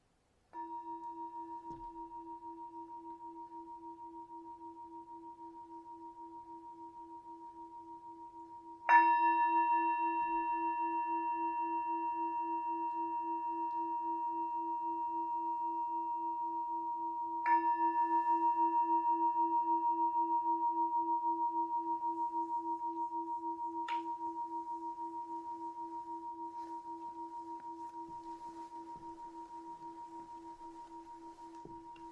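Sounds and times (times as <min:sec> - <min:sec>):
singing bowl ringing: 0:00.5 - 0:32.1.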